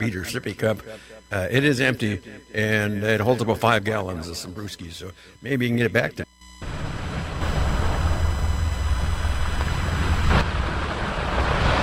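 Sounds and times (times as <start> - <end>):
speech: 0.0 - 6.2
ocean waves washing onto a beach: 6.7 - 11.8.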